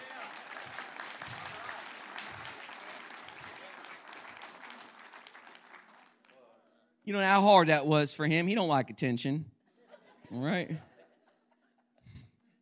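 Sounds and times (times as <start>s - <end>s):
audience applause: 0.0s - 6.3s
speech: 7.1s - 9.5s, 10.3s - 10.9s.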